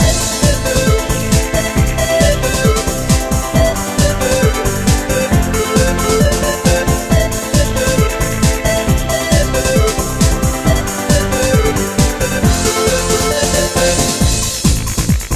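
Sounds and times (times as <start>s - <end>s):
instrumental dance ringtone: 0.0s - 15.2s.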